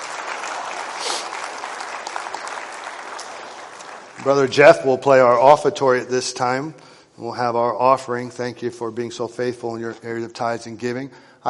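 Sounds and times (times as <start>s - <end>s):
audience applause: 0.0s - 5.3s
speech: 4.2s - 11.3s.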